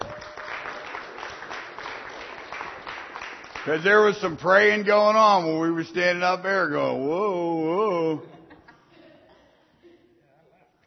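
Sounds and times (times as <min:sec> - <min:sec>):
audience applause: 0:00.0 - 0:04.6
speech: 0:03.6 - 0:08.4
laughter: 0:07.9 - 0:10.3.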